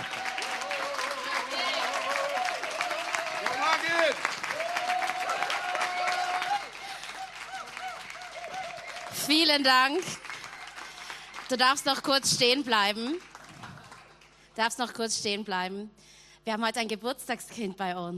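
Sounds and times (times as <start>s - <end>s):
audience applause with standing ovation: 0.0s - 11.9s, 13.1s - 14.3s
speech: 9.3s - 10.2s, 11.5s - 13.3s, 14.6s - 18.1s.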